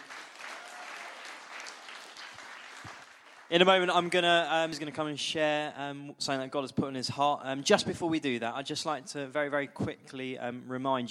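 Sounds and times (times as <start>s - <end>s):
audience applause: 0.0s - 3.8s
speech: 3.5s - 11.1s.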